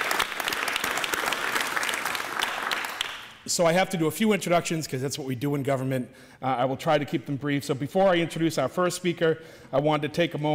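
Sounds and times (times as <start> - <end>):
audience applause: 0.0 - 3.4
speech: 3.5 - 10.5.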